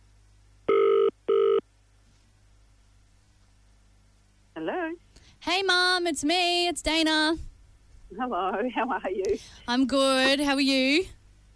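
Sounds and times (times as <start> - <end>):
faint low hum: 0.0 - 11.5
phone line ringing tones: 0.7 - 1.6
speech: 5.4 - 7.5, 8.1 - 11.2.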